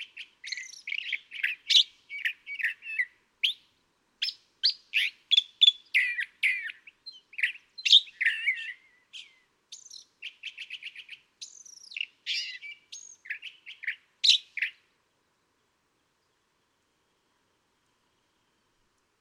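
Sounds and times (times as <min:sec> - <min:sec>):
California thrasher calling: 0:00.0 - 0:03.6, 0:04.2 - 0:14.9.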